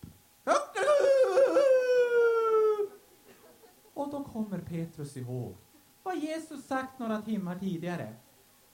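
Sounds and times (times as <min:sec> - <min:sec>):
rooster crowing: 0:00.4 - 0:03.0
speech: 0:04.4 - 0:08.3.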